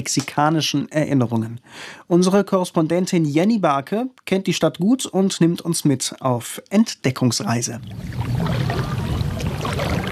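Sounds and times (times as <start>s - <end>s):
speech: 0.0s - 9.0s
canoe paddle dipping into mirror-smooth water in Mexico City: 7.8s - 10.1s.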